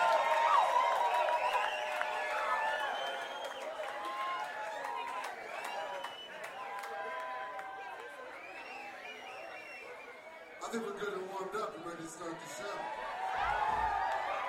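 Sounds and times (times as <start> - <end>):
audience clapping: 0.0 - 9.8, 13.1 - 14.4
speech: 10.7 - 14.0.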